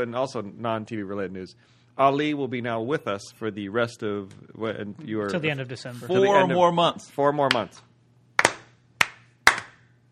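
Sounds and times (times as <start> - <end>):
speech: 0.0 - 7.9
one person clapping: 7.5 - 7.8, 8.4 - 9.8.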